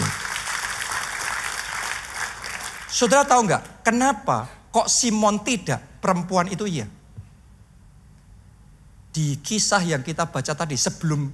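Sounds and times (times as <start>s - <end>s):
audience applause: 0.0s - 2.9s
speech: 3.0s - 7.0s, 9.2s - 11.3s.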